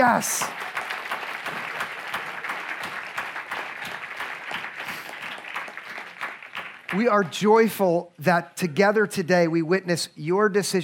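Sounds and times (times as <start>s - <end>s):
speech: 0.0s - 0.7s, 6.9s - 10.8s
audience applause: 0.0s - 7.2s.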